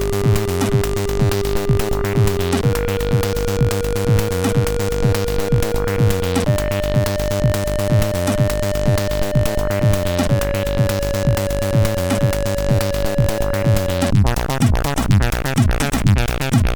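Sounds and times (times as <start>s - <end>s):
brain waves sound effect: 0.0s - 16.6s.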